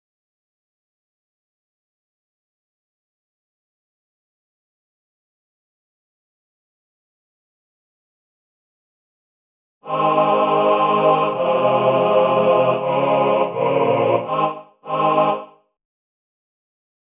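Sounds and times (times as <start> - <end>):
classical male ensemble singing: 9.8 - 15.6.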